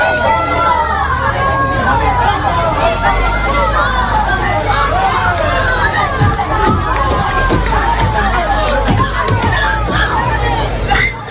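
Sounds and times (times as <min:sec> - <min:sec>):
angry crowd shouting and yelling: 0:00.0 - 0:11.2
bangs striking an armored Guardia Civil van: 0:06.0 - 0:10.3.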